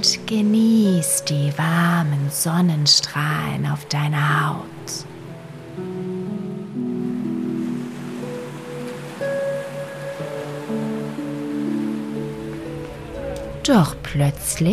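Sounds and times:
speech: 0.0 - 5.1, 13.7 - 14.7
calm sustained synth chords: 0.0 - 14.7
gentle waves lapping at the shore: 7.0 - 14.7.

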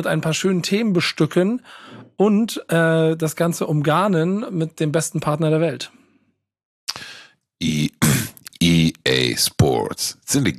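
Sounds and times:
speech: 0.0 - 6.0, 7.6 - 7.9, 8.6 - 10.5
throat clearing: 6.9 - 8.6.

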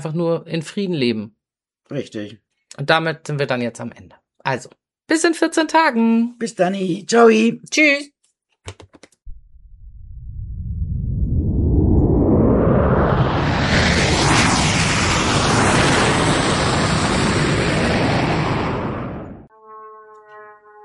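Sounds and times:
speech: 0.0 - 8.9
loud airplane flying overhead: 10.3 - 20.8.

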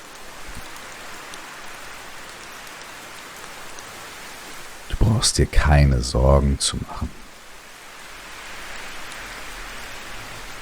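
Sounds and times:
gentle wind: 0.0 - 10.6
rain: 0.0 - 10.6
speech: 5.0 - 7.2.

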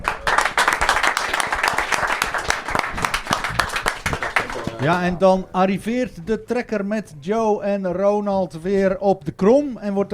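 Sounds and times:
applause: 0.0 - 5.2
speech: 4.8 - 10.1.

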